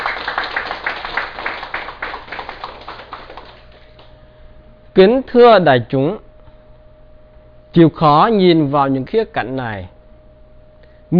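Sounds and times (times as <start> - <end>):
audience applause: 0.0 - 4.1
speech: 5.0 - 6.2, 7.7 - 10.0.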